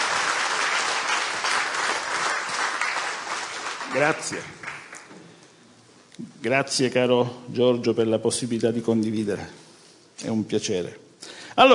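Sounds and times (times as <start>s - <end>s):
audience applause: 0.0s - 5.2s
speech: 3.9s - 4.6s, 6.2s - 9.6s, 10.2s - 11.0s, 11.6s - 11.7s.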